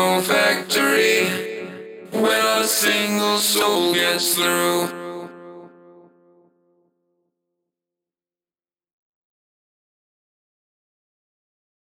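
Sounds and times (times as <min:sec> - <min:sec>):
vocals: 0:00.0 - 0:06.3.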